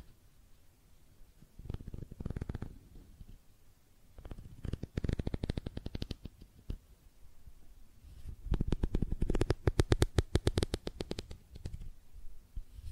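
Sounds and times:
tapping and scratching on makeup items: 0:01.7 - 0:03.3, 0:04.2 - 0:06.8, 0:08.5 - 0:11.9.

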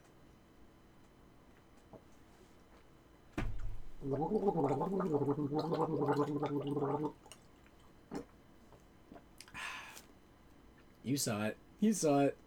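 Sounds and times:
person gargling water: 0:03.7 - 0:07.4, 0:08.1 - 0:08.4
speech: 0:04.0 - 0:07.3, 0:11.1 - 0:12.4
breathy exhale: 0:09.5 - 0:10.0.

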